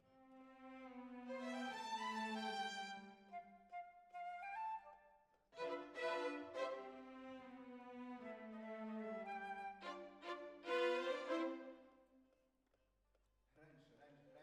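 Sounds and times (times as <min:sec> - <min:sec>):
violins: 0:00.0 - 0:03.4, 0:05.6 - 0:11.9.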